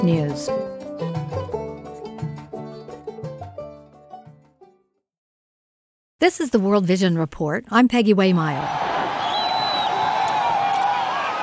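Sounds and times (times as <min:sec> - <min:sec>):
speech: 0:00.0 - 0:01.1, 0:06.2 - 0:08.9
crowd celebrating in city streets: 0:08.6 - 0:11.4
high whistle-like cries: 0:09.2 - 0:11.2.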